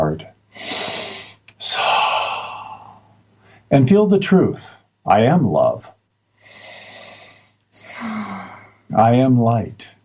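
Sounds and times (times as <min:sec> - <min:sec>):
speech: 0:00.1 - 0:00.7, 0:01.6 - 0:01.9, 0:03.7 - 0:06.0, 0:08.9 - 0:10.0
deep breathing during a guided meditation: 0:00.6 - 0:03.7, 0:06.4 - 0:08.7.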